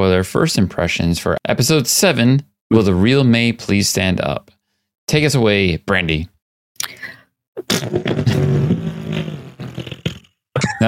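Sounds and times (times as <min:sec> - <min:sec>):
speech: 0:00.0 - 0:07.0, 0:07.7 - 0:08.8
fart noise: 0:07.6 - 0:10.8.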